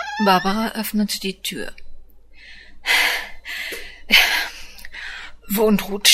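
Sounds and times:
speech: 0:00.2 - 0:01.8, 0:02.8 - 0:03.3, 0:05.5 - 0:06.1
pregnant woman gasping for breath after climbing stairs: 0:02.4 - 0:05.4.

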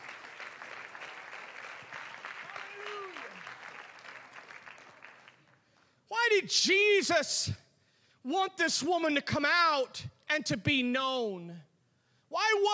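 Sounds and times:
audience clapping hands: 0:00.0 - 0:05.9
speech: 0:06.4 - 0:07.6, 0:08.2 - 0:11.7, 0:12.4 - 0:12.7.

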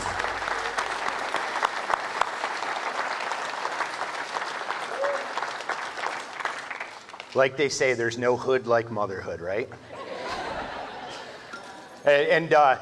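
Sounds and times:
audience applause: 0:00.0 - 0:07.4
speech: 0:07.4 - 0:10.0, 0:12.0 - 0:12.8
laughter: 0:09.8 - 0:11.6.

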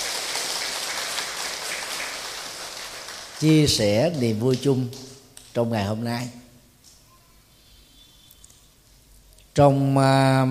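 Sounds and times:
crowd applauding at a Vietnamese Buddhist ceremony: 0:00.0 - 0:04.4
speech: 0:03.4 - 0:06.4, 0:09.6 - 0:10.4.

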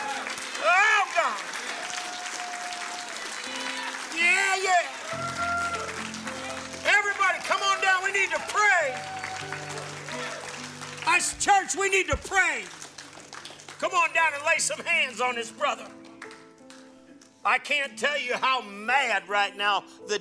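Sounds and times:
audience applauding: 0:00.0 - 0:16.9
sustained organ chords: 0:03.4 - 0:18.2
speech: 0:11.4 - 0:12.8, 0:13.8 - 0:16.0, 0:17.4 - 0:20.1.

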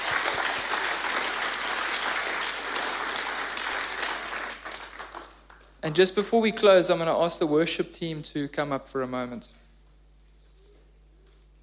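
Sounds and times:
audience applause: 0:00.0 - 0:05.7
speech: 0:05.8 - 0:09.6.

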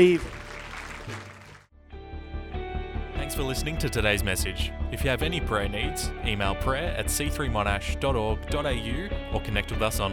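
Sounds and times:
speech: 0:00.0 - 0:00.3, 0:01.1 - 0:01.3, 0:03.3 - 0:10.1
audience hand clapping: 0:00.0 - 0:01.7
sustained tonal music: 0:01.8 - 0:10.1.

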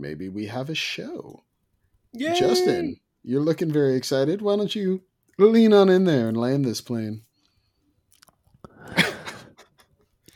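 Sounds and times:
speech: 0:00.0 - 0:01.5, 0:02.1 - 0:07.3
wet mouth noises: 0:08.1 - 0:08.9.

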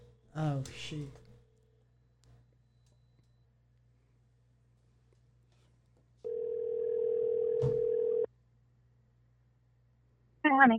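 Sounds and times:
person speaking: 0:00.3 - 0:01.4
telephone ringback tone on a call line: 0:06.3 - 0:08.3.

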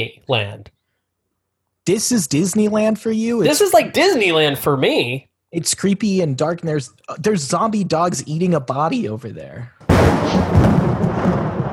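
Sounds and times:
speech: 0:00.0 - 0:00.8, 0:01.8 - 0:11.4
thunderclap sound effect: 0:09.9 - 0:11.7.

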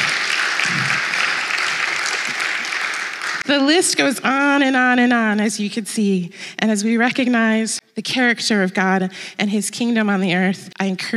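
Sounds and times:
audience applause: 0:00.0 - 0:03.4
speech: 0:03.5 - 0:11.1.

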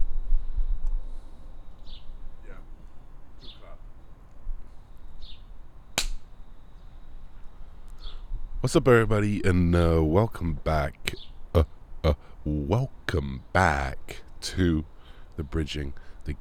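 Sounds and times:
hand clap: 0:06.0 - 0:06.2
speech: 0:08.6 - 0:16.3.

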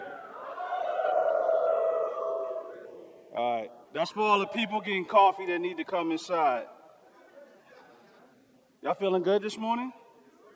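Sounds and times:
audience howling: 0:00.0 - 0:03.6
speech: 0:03.4 - 0:06.8, 0:08.8 - 0:10.0.

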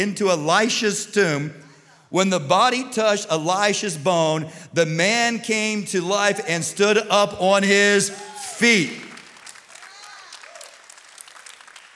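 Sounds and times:
speech: 0:00.0 - 0:09.1
audience clapping: 0:08.3 - 0:11.9.

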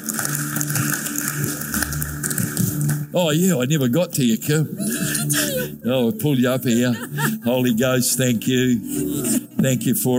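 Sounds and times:
audience clapping hands: 0:00.0 - 0:03.2
speech: 0:03.2 - 0:10.1
laughter: 0:04.5 - 0:08.1.

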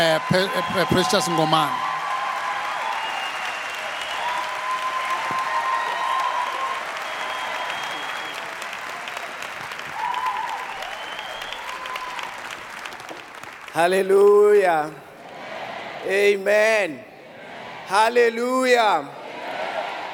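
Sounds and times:
speech: 0:00.0 - 0:02.0, 0:13.8 - 0:15.1, 0:16.0 - 0:17.1, 0:17.9 - 0:19.2
cathedral congregation applauding to welcome a preacher: 0:00.0 - 0:19.2.

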